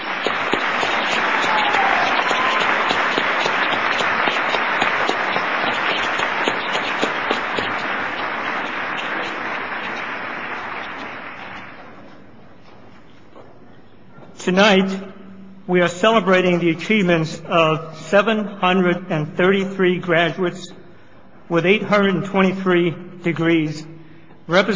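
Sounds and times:
large audience applauding: 0.0s - 12.1s
speech: 14.5s - 15.1s, 15.7s - 20.8s, 21.5s - 23.9s, 24.5s - 24.7s.

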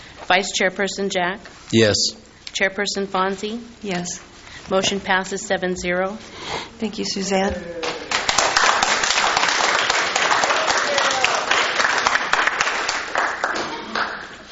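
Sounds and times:
speech: 0.3s - 8.0s
audience applause: 7.8s - 14.5s.

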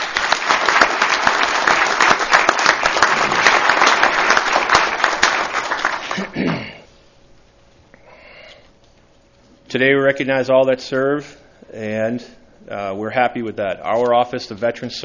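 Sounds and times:
audience applause: 0.0s - 6.4s
speech: 9.7s - 15.0s.

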